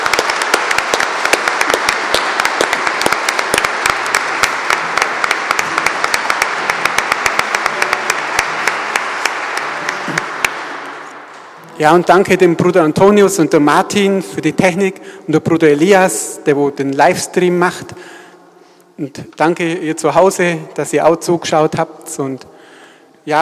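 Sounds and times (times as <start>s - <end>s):
audience applause: 0.0s - 11.3s
speech: 11.8s - 18.2s, 19.0s - 22.5s, 23.2s - 23.4s.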